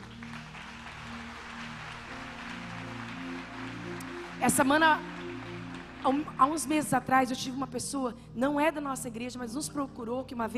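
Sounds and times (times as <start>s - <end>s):
audience applause: 0.0s - 6.7s
speech: 4.4s - 5.1s, 6.0s - 10.5s.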